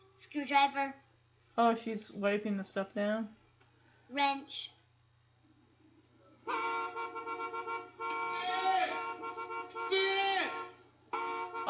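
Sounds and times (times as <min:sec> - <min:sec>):
speech: 0:00.4 - 0:03.4, 0:04.1 - 0:04.8
stuck car horn honking: 0:06.4 - 0:11.6.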